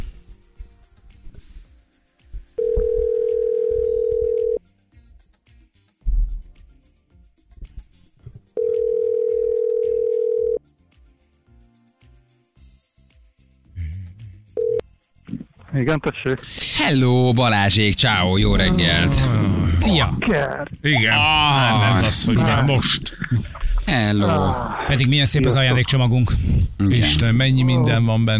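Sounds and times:
telephone line tone while calling a radio listener: 0:02.6 - 0:04.6, 0:08.6 - 0:10.6, 0:14.6 - 0:14.8
speech: 0:15.8 - 0:28.3
laughter: 0:20.2 - 0:26.2.

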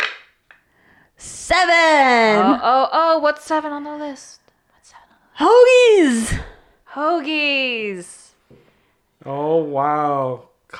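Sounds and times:
dice being rolled: 0:00.0 - 0:00.6
speech: 0:01.5 - 0:08.2, 0:09.2 - 0:10.7.

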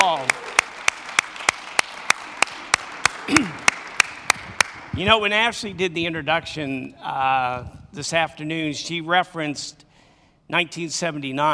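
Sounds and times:
audience applause: 0:00.0 - 0:04.9
speech: 0:05.0 - 0:09.8, 0:10.5 - 0:11.5.

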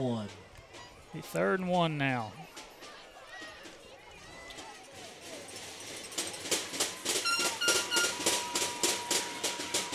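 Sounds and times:
speech: 0:00.0 - 0:00.4, 0:01.1 - 0:02.6
student section beating on pieces of tin: 0:04.6 - 0:09.9.

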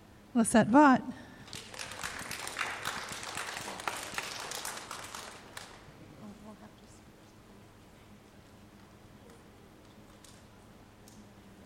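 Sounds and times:
speech: 0:00.4 - 0:01.2
audience applause: 0:01.4 - 0:06.0.

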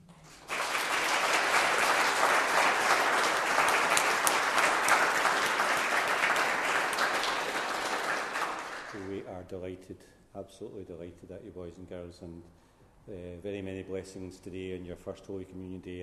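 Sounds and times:
audience round of applause: 0:00.0 - 0:09.2
speech: 0:09.5 - 0:16.0.

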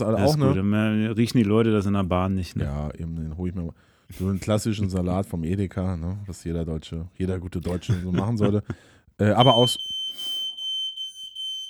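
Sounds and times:
laughter: 0:00.0 - 0:00.6, 0:07.6 - 0:08.8
speech: 0:00.0 - 0:09.9
fire alarm beeping: 0:09.4 - 0:11.6.

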